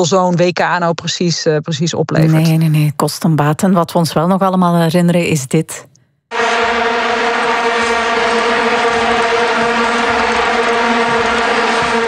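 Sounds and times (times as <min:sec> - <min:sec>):
speech: 0:00.0 - 0:06.4
vuvuzela plastic horns blaring: 0:06.3 - 0:12.0.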